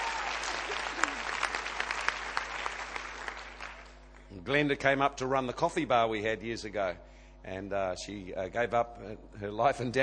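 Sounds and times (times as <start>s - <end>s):
audience applause: 0.0s - 4.0s
speech: 4.5s - 10.0s.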